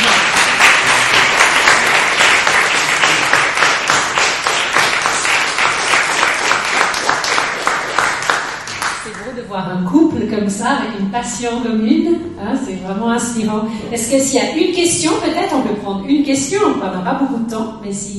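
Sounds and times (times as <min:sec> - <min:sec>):
audience applause: 0:00.0 - 0:09.2
speech: 0:10.4 - 0:18.1.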